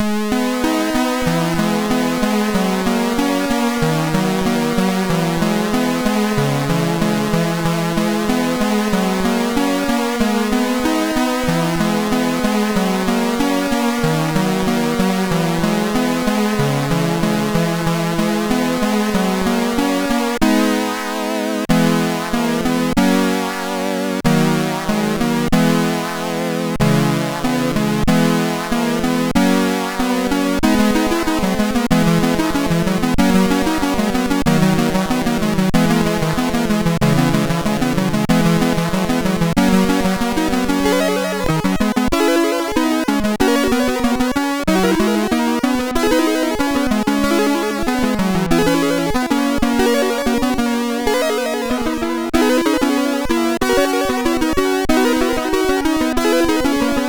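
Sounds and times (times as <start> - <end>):
piano melody on SID MOS6581R2 sound chip: 0.0 - 57.0.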